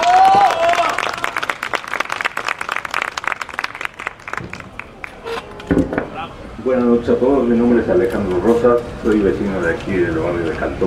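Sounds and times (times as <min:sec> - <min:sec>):
audience applause: 0:00.0 - 0:05.1
speech: 0:06.7 - 0:10.8.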